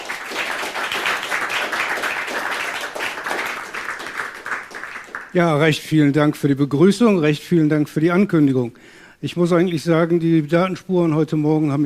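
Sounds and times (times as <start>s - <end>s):
audience applause: 0.0s - 5.4s
speech: 5.3s - 11.8s.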